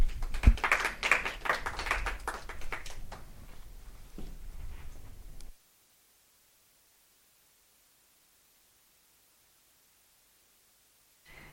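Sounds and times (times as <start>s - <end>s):
audience applause: 0.0s - 3.3s.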